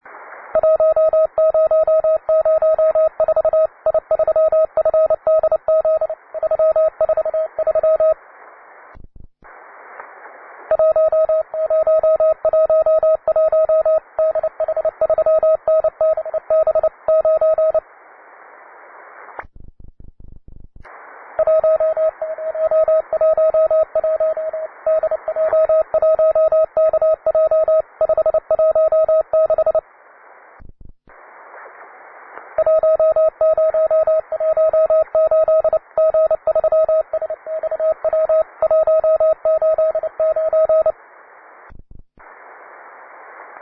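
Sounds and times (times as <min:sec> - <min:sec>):
CW Morse code beeps: 0:00.6 - 0:08.2, 0:10.7 - 0:17.8, 0:21.4 - 0:29.8, 0:32.6 - 0:41.0.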